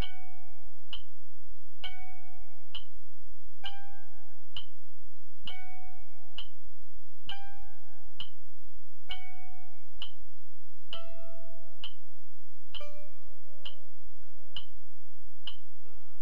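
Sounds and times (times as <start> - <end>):
advanced third position exercise on mandolin: 0.0 - 16.1.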